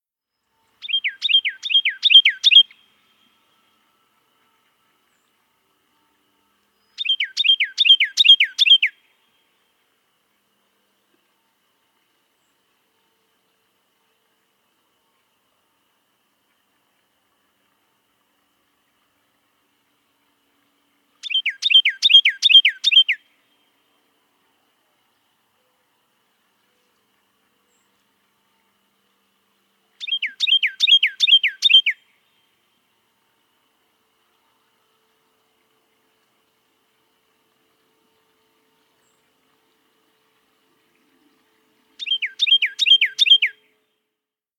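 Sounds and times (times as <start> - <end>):
Carolina Wren singing: 0.8 - 2.9, 7.0 - 9.0, 21.2 - 23.2, 30.0 - 32.0, 42.0 - 43.6.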